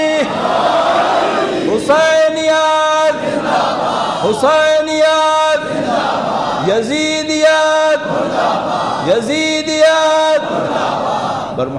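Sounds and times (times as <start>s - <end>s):
crowd shouting a slogan in unison: 0.0s - 4.4s, 5.2s - 6.8s, 7.6s - 9.1s, 10.1s - 11.6s
speech: 1.9s - 2.6s, 4.2s - 5.2s, 6.6s - 11.7s.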